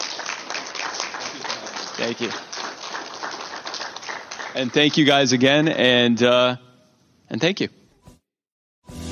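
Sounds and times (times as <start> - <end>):
audience applause for panelists: 0.0 - 5.3
speech: 2.0 - 2.5, 4.5 - 6.6, 7.3 - 7.8.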